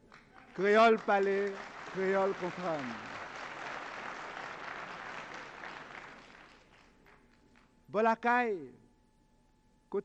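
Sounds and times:
audience applause: 0.3 - 7.0
speech: 0.6 - 3.1, 7.9 - 8.8.

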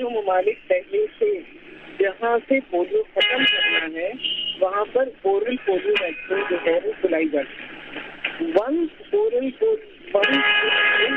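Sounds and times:
speech: 0.0 - 11.1
car horns honking over a phone line: 3.2 - 4.6, 10.2 - 11.1.

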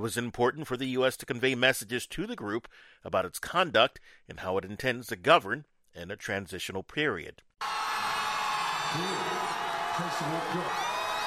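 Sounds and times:
speech: 0.0 - 7.8, 8.9 - 10.9
large crowd cheering: 7.6 - 11.2.

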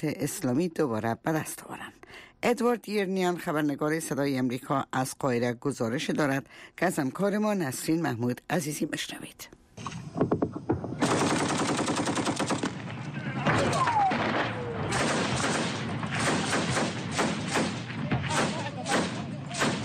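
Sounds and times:
speech: 0.0 - 10.0
gunfire during a firefight: 10.9 - 19.8.

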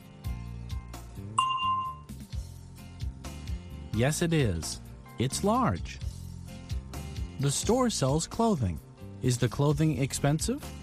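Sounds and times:
bell tone prompting an answer in a language drill: 1.4 - 2.1
speech: 4.0 - 6.0, 7.4 - 10.8.

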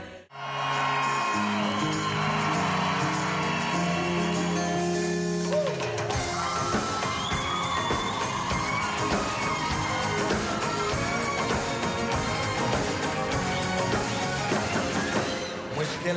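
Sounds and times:
concert audience cheering and whooping: 0.3 - 15.4.

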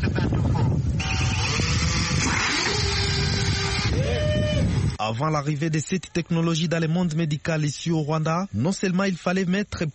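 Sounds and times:
delivery drone taking off: 0.9 - 5.0
speech: 5.1 - 9.9.

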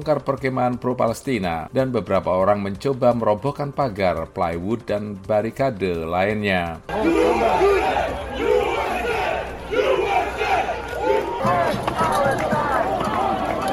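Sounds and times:
speech: 0.0 - 8.2
crowd shouting during protest clash: 6.9 - 13.7.

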